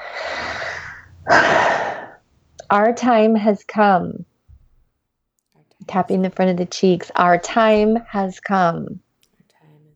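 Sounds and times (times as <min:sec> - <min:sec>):
deep breath during a guided tapping meditation: 0:00.0 - 0:02.2
speech: 0:02.7 - 0:04.3, 0:05.9 - 0:09.0.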